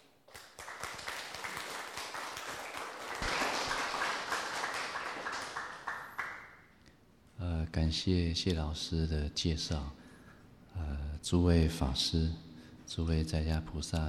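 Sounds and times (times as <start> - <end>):
warm applause from a crowd: 0.4 - 6.6
speech: 7.9 - 10.0, 11.3 - 14.0.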